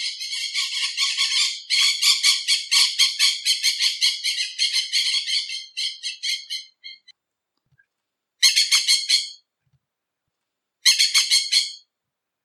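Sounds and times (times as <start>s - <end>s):
red-fronted tiriba parakeet calling: 0.0s - 7.1s, 10.8s - 11.8s.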